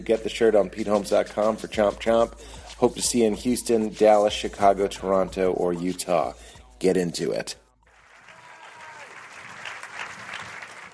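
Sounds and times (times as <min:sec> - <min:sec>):
speech: 0:00.0 - 0:07.6
stand-up comedy audience applause: 0:07.9 - 0:10.9.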